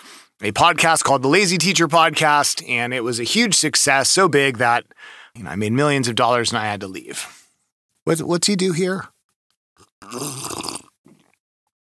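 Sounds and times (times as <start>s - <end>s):
speech: 0.4s - 7.4s, 8.0s - 9.1s, 10.0s - 10.8s
person slurping a drink: 9.8s - 11.4s
soft sips or breaths: 9.8s - 11.4s.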